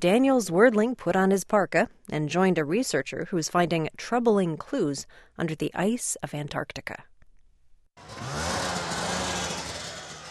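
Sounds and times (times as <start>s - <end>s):
speech: 0.0s - 7.1s, 8.0s - 8.5s
snowmobile engines idling: 8.0s - 10.2s.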